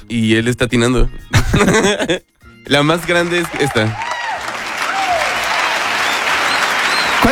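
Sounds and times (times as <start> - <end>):
speech: 0.0 - 4.1
laughter: 1.3 - 7.3
large crowd applauding: 2.7 - 7.3
whistles: 3.2 - 7.3.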